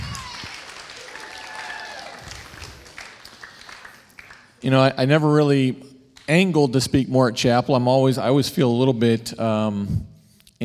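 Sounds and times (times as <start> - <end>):
audience applause: 0.0 - 4.6
speech: 4.6 - 10.6.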